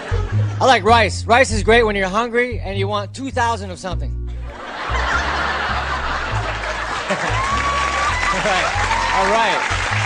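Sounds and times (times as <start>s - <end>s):
audience laughing in comedy recording: 0.0s - 0.9s, 4.5s - 10.0s
speech: 0.6s - 4.6s, 8.4s - 10.0s
audience clapping in comedy recording: 4.7s - 10.0s.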